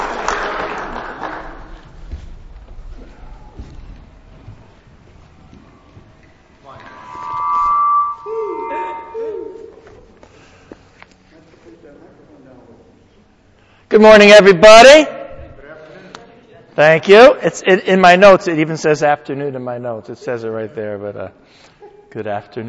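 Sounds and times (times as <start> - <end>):
audience clapping: 0.0 - 2.0
speech: 14.0 - 15.1, 16.8 - 22.6.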